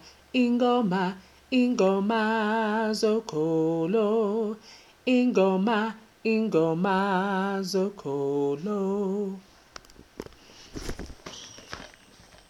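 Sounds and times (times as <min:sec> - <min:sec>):
tenor singing: 0:00.0 - 0:09.4.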